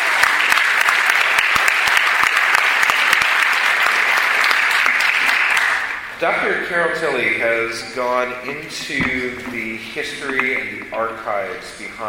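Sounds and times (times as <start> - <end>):
audience applause: 0.0 - 6.1
speech: 6.2 - 12.0.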